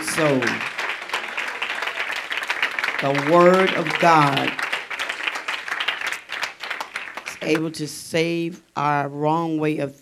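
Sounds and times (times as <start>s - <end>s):
crowd applause: 0.0s - 7.6s
speech: 0.2s - 0.7s, 3.0s - 4.6s, 7.4s - 10.0s.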